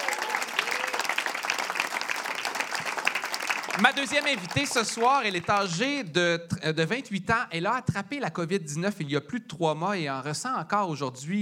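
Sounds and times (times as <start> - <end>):
audience applause: 0.0 - 5.9
speech: 3.8 - 11.4.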